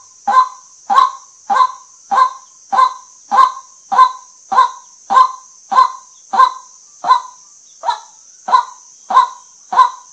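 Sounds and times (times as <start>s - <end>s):
white-breasted waterhen croaking: 0.0s - 10.1s.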